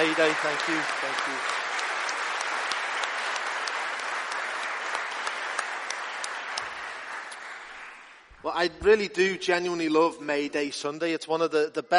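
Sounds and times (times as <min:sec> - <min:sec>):
audience applause: 0:00.0 - 0:08.7
speech: 0:00.2 - 0:01.7, 0:08.4 - 0:11.9.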